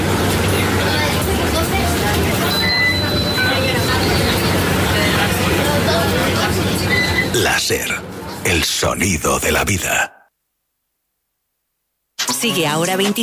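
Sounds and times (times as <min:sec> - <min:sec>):
city bus engine drone in motion: 0:00.0 - 0:09.6
indistinct voices chattering on a city bus: 0:00.4 - 0:10.2
speech: 0:07.7 - 0:10.2, 0:12.4 - 0:13.2.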